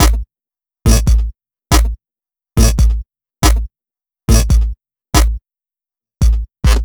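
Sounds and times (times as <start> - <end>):
glitch beat: 0.9 - 1.9, 2.6 - 3.6, 4.3 - 5.3, 6.2 - 6.8.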